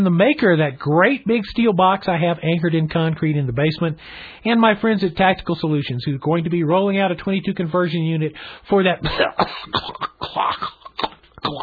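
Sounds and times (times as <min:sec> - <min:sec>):
speech: 0:00.0 - 0:11.6
harsh coughing from a bad head cold in the chest: 0:09.0 - 0:11.6
throat clearing: 0:09.0 - 0:11.6.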